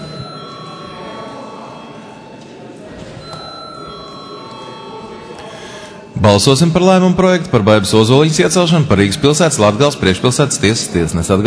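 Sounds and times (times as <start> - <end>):
electric voting bell ringing: 0.0 - 7.1
low murmur of a chamber: 0.0 - 11.4
speech: 6.2 - 11.4.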